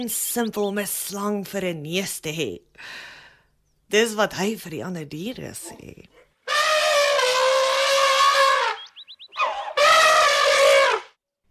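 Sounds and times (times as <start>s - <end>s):
speech: 0.0s - 3.2s, 3.9s - 6.2s
elephant trumpeting: 6.4s - 11.2s.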